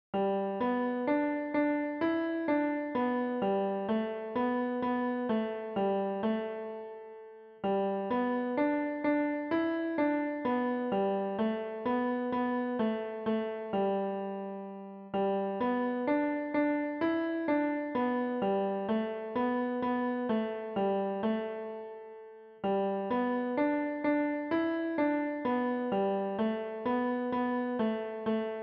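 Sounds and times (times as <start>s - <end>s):
piano: 0.2s - 28.6s.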